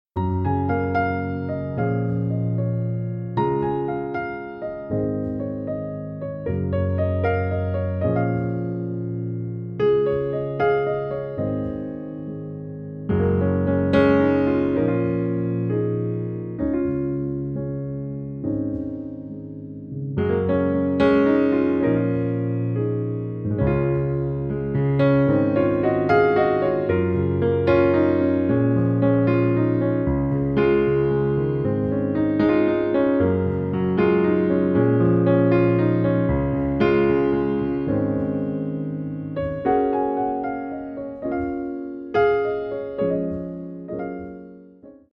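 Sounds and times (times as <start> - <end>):
piano music: 0.1 - 45.1.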